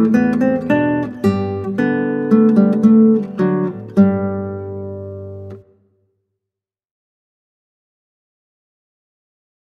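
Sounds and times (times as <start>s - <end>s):
classical guitar: 0.0s - 6.0s.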